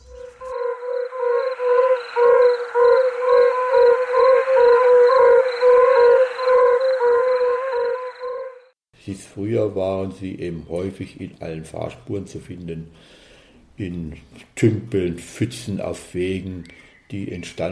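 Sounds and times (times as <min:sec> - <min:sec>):
yellow-bellied toads hooting in chorus: 0:00.0 - 0:08.7
speech: 0:09.4 - 0:13.2, 0:13.8 - 0:17.7.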